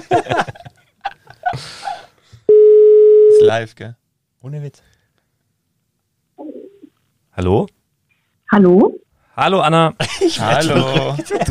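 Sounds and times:
speech: 0.0s - 0.5s, 3.4s - 5.0s, 7.4s - 7.8s, 8.5s - 11.4s
people laughing: 0.0s - 1.7s, 10.0s - 11.4s
telephone ringing tone on an outgoing call: 2.5s - 3.4s.

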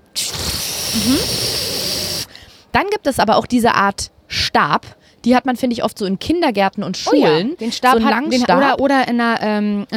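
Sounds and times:
voice imitating a toilet cistern flushing: 0.1s - 2.4s
speech: 1.0s - 1.5s, 2.8s - 9.9s.

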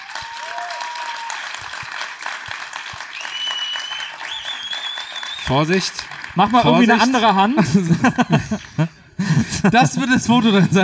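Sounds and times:
audience clapping: 0.0s - 9.4s
whistles: 3.1s - 5.6s
speech: 5.5s - 10.8s
laughter: 6.4s - 10.8s.

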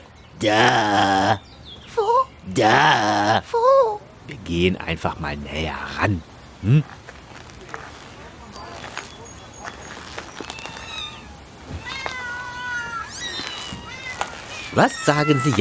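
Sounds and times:
speech: 0.4s - 1.5s, 2.5s - 7.0s, 14.8s - 15.5s
many cats meowing: 9.9s - 15.5s.

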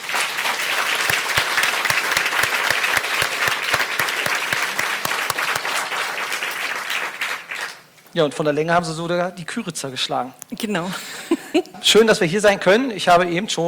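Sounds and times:
audience applause: 0.0s - 7.9s
speech: 8.2s - 13.6s.

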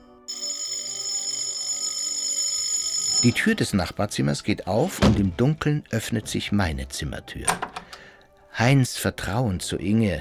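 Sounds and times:
shrill electric doorbell ringing at the front door: 0.2s - 3.6s
speech: 3.2s - 7.8s, 8.6s - 10.1s.

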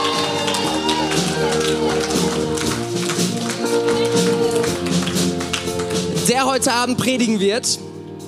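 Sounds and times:
audience applause: 0.0s - 6.1s
speech: 6.4s - 7.9s.

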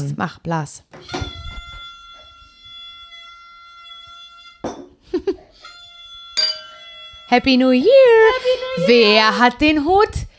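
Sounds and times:
speech: 0.0s - 1.3s, 7.3s - 10.3s
glasses clinking in a toast: 6.4s - 7.0s.

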